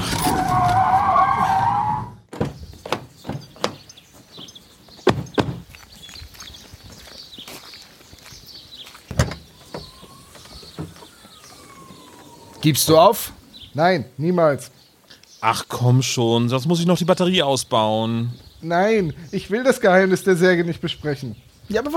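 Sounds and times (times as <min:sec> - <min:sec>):
car rolling through gravel: 0:00.0 - 0:02.0, 0:08.5 - 0:13.7
light scuffing: 0:02.7 - 0:11.2
speech: 0:12.7 - 0:14.8, 0:15.4 - 0:21.9.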